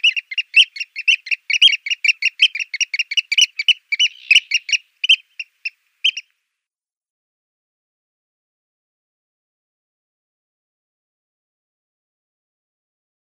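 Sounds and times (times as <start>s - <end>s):
Eurasian oystercatcher piping calls: 0.0s - 6.3s.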